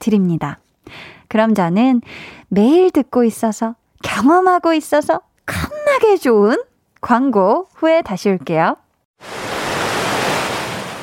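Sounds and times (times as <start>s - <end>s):
speech: 0.0s - 9.4s
ocean waves breaking on shore: 9.2s - 11.0s.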